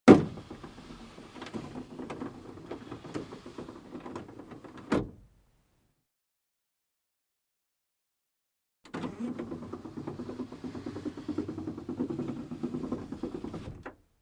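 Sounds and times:
car glass window lowered and raised manually: 0.1 - 5.2, 8.9 - 14.0.

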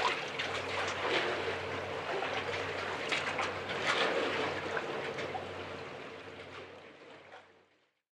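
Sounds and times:
water splash: 0.0 - 5.4.

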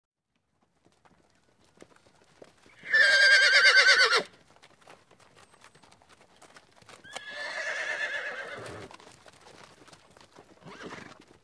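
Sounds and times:
horse whinnying: 2.7 - 4.3, 7.0 - 8.9, 10.6 - 11.2.

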